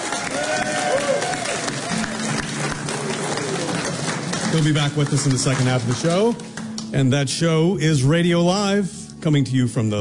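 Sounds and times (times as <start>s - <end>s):
audience applause: 0.0s - 6.6s
speech: 4.5s - 9.9s.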